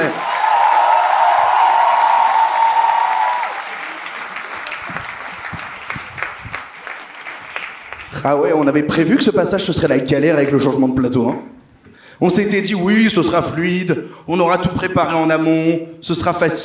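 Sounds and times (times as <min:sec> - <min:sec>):
audience applause: 0:00.0 - 0:08.2
speech: 0:08.2 - 0:11.6, 0:12.2 - 0:16.6.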